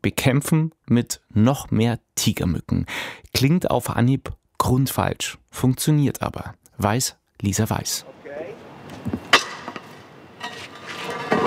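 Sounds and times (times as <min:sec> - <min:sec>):
speech: 0:00.0 - 0:09.2
manhole cover scraped over cobblestones in Rome: 0:08.6 - 0:11.4.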